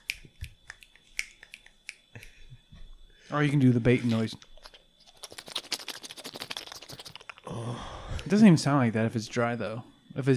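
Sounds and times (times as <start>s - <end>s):
finger snapping: 0.0s - 2.4s
speech: 3.3s - 4.5s, 8.3s - 10.3s.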